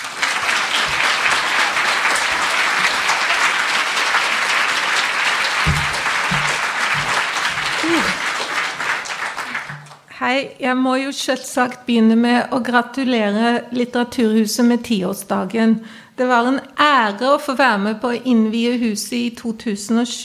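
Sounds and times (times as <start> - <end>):
audience applause: 0.0 - 10.1
speech: 10.2 - 20.2.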